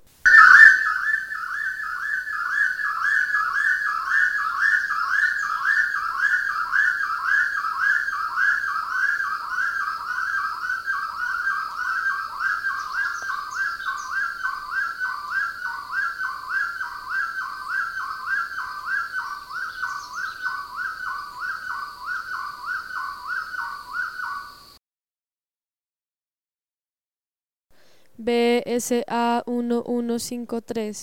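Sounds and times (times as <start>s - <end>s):
bird whistling: 0.3s - 24.8s
speech: 28.2s - 31.0s.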